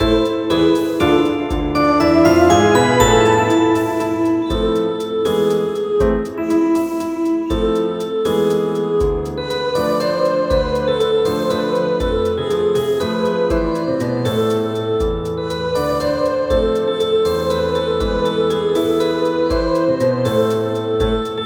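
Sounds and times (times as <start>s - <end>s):
keyboard: 0.0s - 21.4s.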